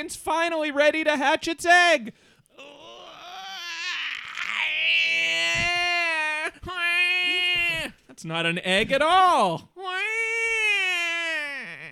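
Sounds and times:
speech: 0.0 - 2.7, 8.2 - 9.7
person imitating baby crying: 2.6 - 8.0, 9.8 - 11.9.

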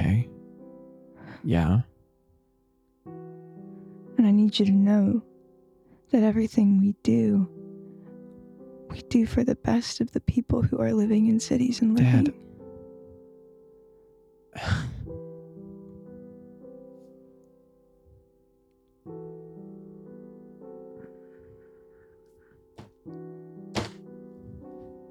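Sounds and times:
speech: 1.4 - 1.9, 4.4 - 5.3, 6.1 - 7.6, 8.9 - 12.5, 14.6 - 14.9
fist slamming on a desk: 23.8 - 24.0.

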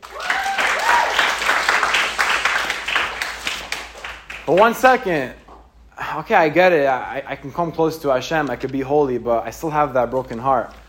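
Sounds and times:
faint cheers: 0.0 - 1.5
crowd applause: 0.0 - 4.4
speech: 4.5 - 5.4, 6.1 - 10.8.

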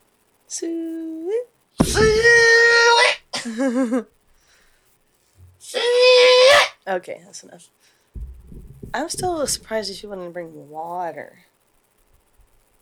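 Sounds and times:
speech: 0.5 - 1.4, 3.4 - 4.2, 6.9 - 7.9, 8.9 - 11.5
person imitating a pig call with high-pitched squealing cries: 1.8 - 3.3, 5.6 - 6.8.

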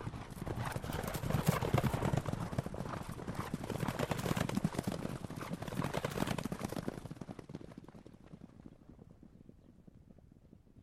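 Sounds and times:
horse hooves clopping: 0.0 - 10.8.

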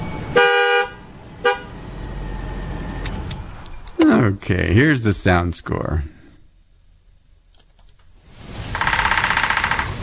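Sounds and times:
speech: 4.0 - 6.2
woodpeckers drumming: 8.8 - 10.0.

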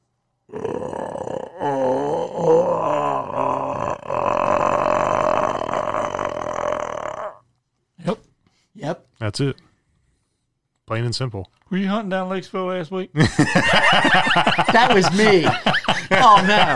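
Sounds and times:
person imitating an animal growl: 0.5 - 7.4
speech: 9.3 - 9.7, 10.9 - 16.7
laughter: 13.2 - 16.7.

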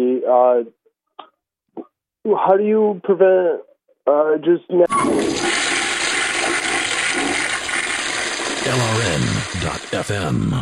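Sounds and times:
speech: 0.3 - 0.8, 2.3 - 5.6, 8.6 - 10.6
toilet flush sound effect: 4.9 - 10.3.

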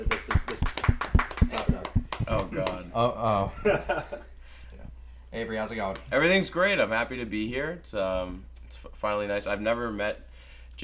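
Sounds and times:
hand clapping: 0.0 - 2.9
speech: 3.0 - 4.3, 5.3 - 10.8.

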